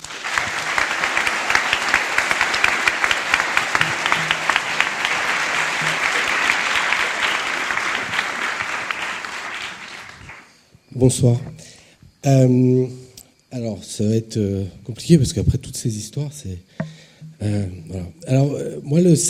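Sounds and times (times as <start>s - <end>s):
crowd applauding loudly: 0.0s - 10.6s
speech: 11.0s - 11.5s, 12.2s - 19.2s.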